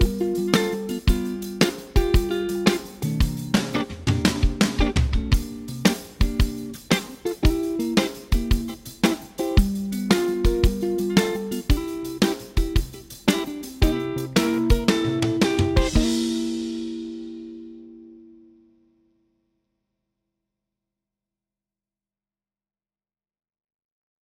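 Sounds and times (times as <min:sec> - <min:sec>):
blues arrangement of a Christmas carol: 0:00.0 - 0:18.4.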